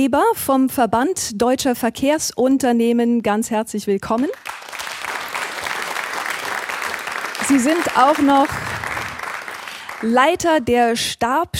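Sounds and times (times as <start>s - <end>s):
speech: 0.0s - 4.6s, 7.5s - 8.7s, 10.0s - 11.5s
audience applause welcoming a guest at an evening panel event: 4.4s - 10.6s.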